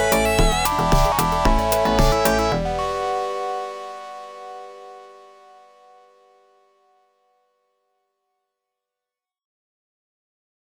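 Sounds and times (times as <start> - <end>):
funk modulator synth: 0.0 - 3.2.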